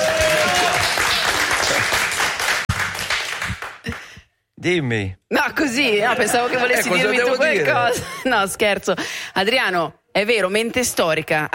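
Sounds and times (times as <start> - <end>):
audience applause: 0.0 - 4.2
speech: 4.6 - 11.5.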